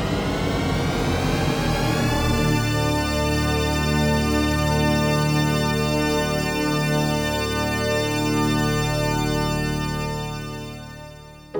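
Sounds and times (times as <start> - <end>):
audio logo of swirling tones converging into a resonant chord: 0.2 - 11.5.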